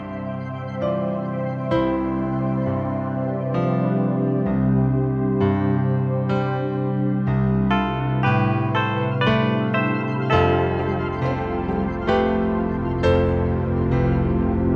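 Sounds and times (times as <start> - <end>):
chill piano synth soundscape: 0.0 - 14.7.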